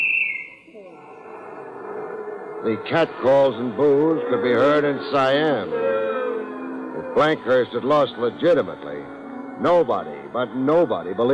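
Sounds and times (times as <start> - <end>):
final whistle blowing at game end: 0.0 - 0.7
speech: 2.6 - 5.9, 7.2 - 11.3.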